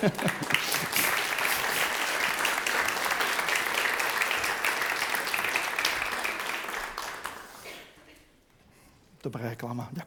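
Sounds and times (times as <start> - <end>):
speech: 0.0 - 1.0, 9.2 - 10.0
laughter: 0.0 - 1.7
audience applause: 0.0 - 7.7.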